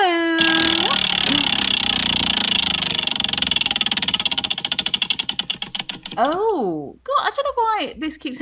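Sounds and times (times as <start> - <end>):
spinning wheel rattling: 0.4 - 6.7
speech: 6.2 - 8.4.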